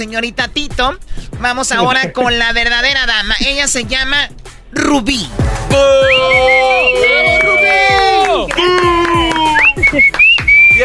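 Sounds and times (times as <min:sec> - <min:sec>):
speech: 0:00.0 - 0:08.9
crowd roar: 0:05.6 - 0:09.7
audience whistling at a contestant: 0:05.7 - 0:10.8
sharp claps or thumps: 0:08.2 - 0:10.8
laughter: 0:08.6 - 0:10.4.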